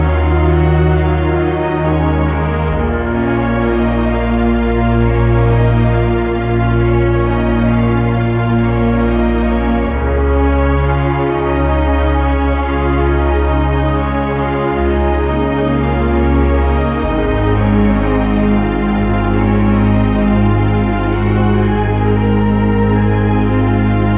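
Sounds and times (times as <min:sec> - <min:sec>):
orchestral ambient music: 0:00.0 - 0:24.1.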